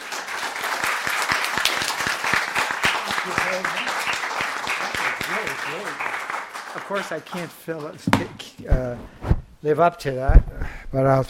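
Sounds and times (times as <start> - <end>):
audience applause: 0.0 - 8.0
speech: 3.5 - 4.0, 5.4 - 11.2.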